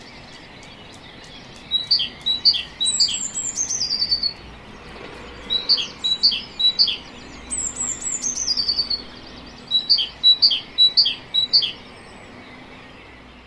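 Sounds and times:
great tit giving two-note chips: 1.6s - 11.9s.

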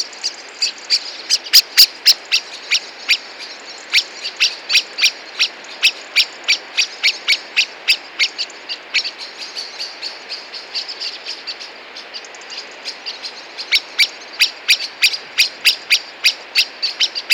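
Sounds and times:
common blackbird chinking call notes: 0.0s - 17.3s.

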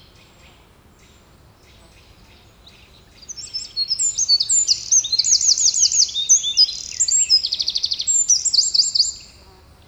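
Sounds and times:
Eurasian wren Troglodytes troglodytes singing: 3.3s - 9.3s.

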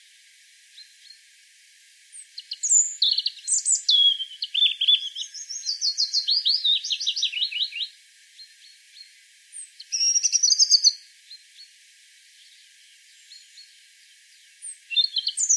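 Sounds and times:
European robin song: 2.2s - 11.7s, 12.4s - 15.5s.

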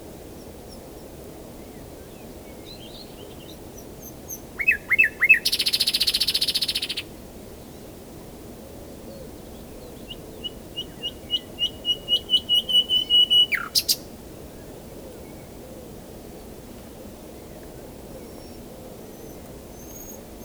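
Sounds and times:
common nightingale singing: 2.8s - 7.1s, 9.9s - 14.0s, 18.2s - 20.4s.

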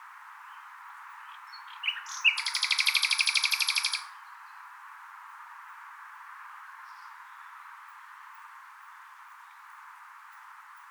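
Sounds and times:
common nightingale trilling: 1.8s - 4.1s.

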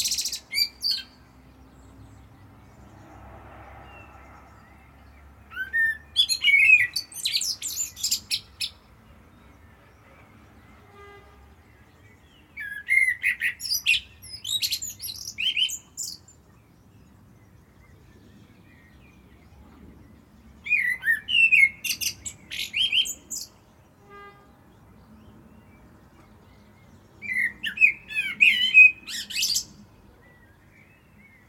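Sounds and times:
common blackbird song: 5.5s - 8.8s, 12.0s - 16.4s, 20.6s - 24.4s, 27.2s - 31.4s.

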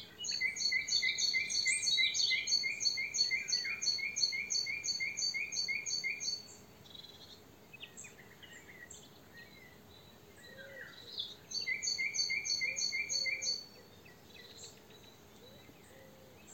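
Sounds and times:
Common nightingale Luscinia megarhynchos song: 0.0s - 16.5s.

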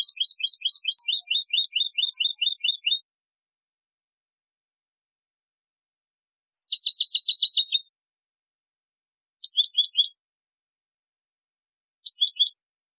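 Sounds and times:
European goldfinch twittering: 0.0s - 3.0s, 6.6s - 7.9s, 9.4s - 10.2s, 12.1s - 12.6s.

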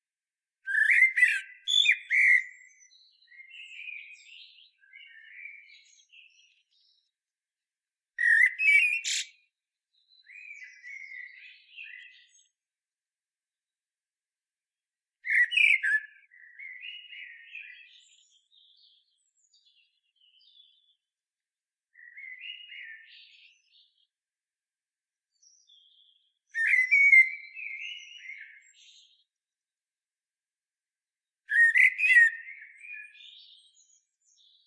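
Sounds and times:
common blackbird warbled song: 0.7s - 7.1s, 8.2s - 12.6s, 15.2s - 21.0s, 22.0s - 24.1s, 25.3s - 29.3s, 31.5s - 34.6s.

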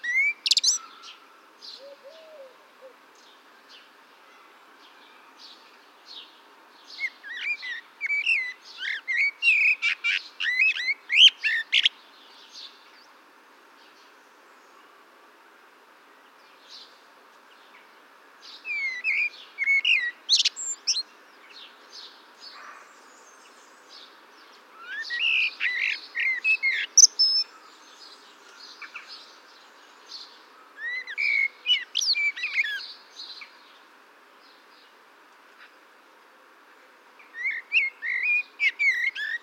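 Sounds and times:
common blackbird song of whistles and twittering: 0.0s - 1.1s, 7.0s - 11.9s, 18.6s - 21.0s, 24.8s - 27.5s, 30.8s - 32.9s, 37.3s - 39.4s
faint hiss: 0.0s - 39.4s.

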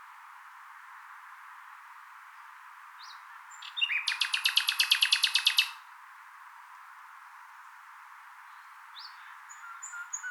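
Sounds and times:
common nightingale singing: 3.0s - 5.8s, 9.0s - 10.2s.

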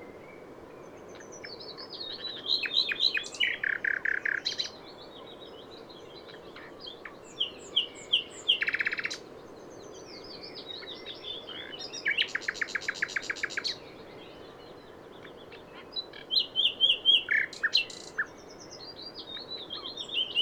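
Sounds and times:
Common nightingale Luscinia megarhynchos singing: 0.0s - 20.3s.

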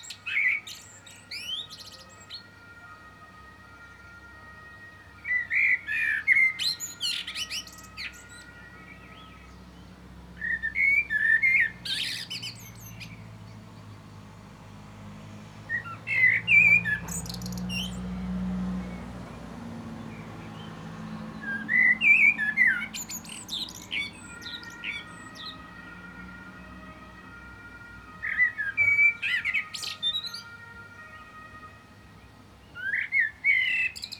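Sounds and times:
common blackbird singing, Turdus merula: 0.0s - 3.0s, 5.2s - 14.1s, 15.7s - 25.7s, 28.2s - 30.6s, 32.6s - 34.1s.

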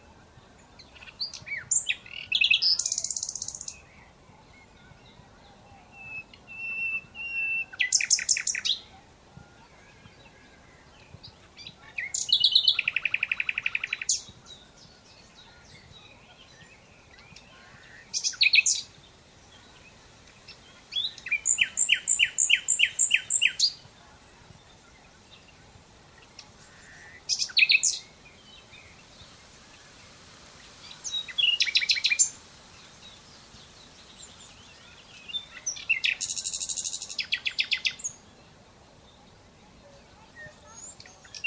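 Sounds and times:
Common Nightingale song: 0.0s - 29.4s, 30.8s - 38.3s, 39.1s - 41.4s.

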